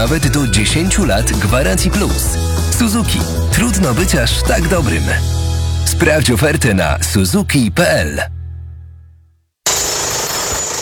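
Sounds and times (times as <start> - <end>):
speech: 0.0 - 8.4
demolition hammer: 9.7 - 10.8.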